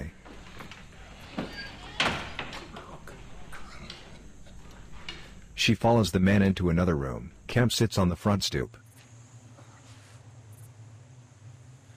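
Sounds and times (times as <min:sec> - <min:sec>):
door opening: 0:00.0 - 0:07.7
speech: 0:05.6 - 0:08.8.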